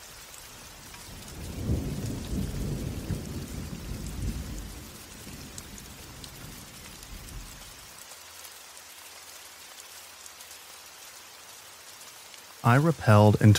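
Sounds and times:
steady rain: 0.0s - 13.5s
rolling thunder: 1.1s - 7.6s
speech: 12.6s - 13.5s.

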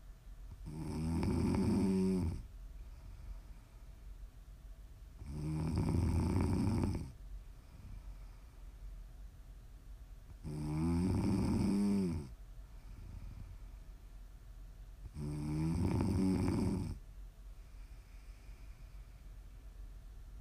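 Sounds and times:
quiet breathing: 0.0s - 20.4s
loud rumbling snoring: 0.6s - 2.4s, 5.2s - 7.2s, 10.4s - 12.3s, 15.1s - 17.0s.

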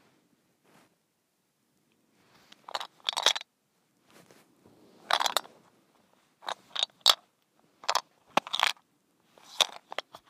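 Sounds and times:
mint shaker rattling: 2.6s - 3.4s, 5.1s - 5.5s, 6.4s - 7.2s, 7.8s - 8.8s, 9.4s - 10.2s.

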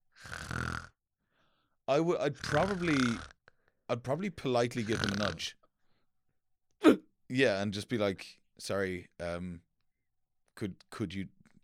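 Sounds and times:
person imitating loud snoring: 0.1s - 1.0s, 2.3s - 3.4s, 4.8s - 5.4s
speech: 1.9s - 5.6s, 6.8s - 9.7s, 10.6s - 11.4s
voiced vocal sounds with shifting pitch: 2.2s - 3.4s, 4.7s - 5.5s.

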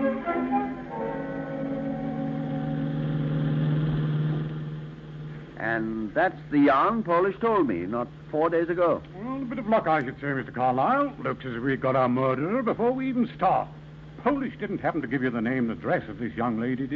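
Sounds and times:
taxi cab engine droning: 0.2s - 5.9s
speech: 6.2s - 16.9s.

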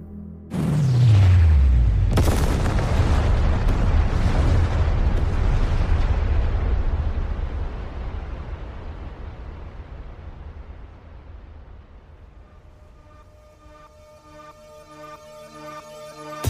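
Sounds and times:
thermonuclear warheads detonating in massive explosions: 0.5s - 12.6s.

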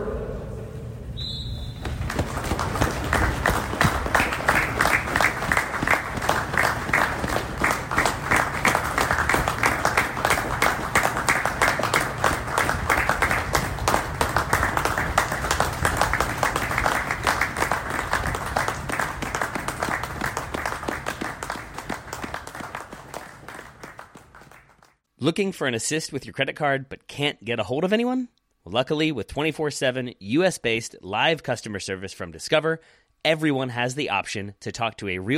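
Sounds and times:
stadium crowd giving a minute's applause: 1.7s - 25.0s
speech: 25.3s - 35.3s.

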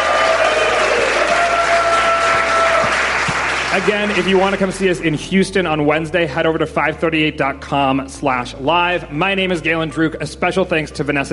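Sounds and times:
audience applause: 0.0s - 4.8s
speech: 3.8s - 11.3s.

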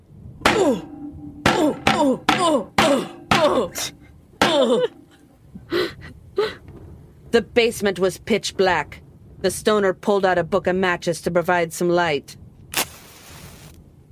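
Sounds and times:
person tripping and falling down stairs: 0.4s - 5.3s
person gasping and grunting: 0.5s - 5.0s
speech: 0.7s - 0.9s, 2.0s - 2.8s, 3.4s - 4.0s, 4.6s - 5.0s, 7.3s - 12.4s.

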